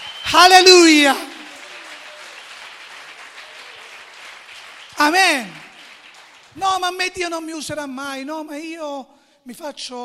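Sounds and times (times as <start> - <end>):
audience applauding: 0.0 - 7.0
speech: 0.3 - 1.3, 5.0 - 5.6, 6.6 - 10.0.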